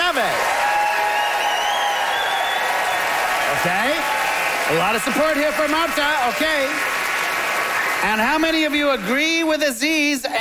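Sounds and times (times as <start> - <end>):
audience applause at a live debate: 0.0 - 9.6
speech: 3.6 - 6.9, 8.0 - 10.4.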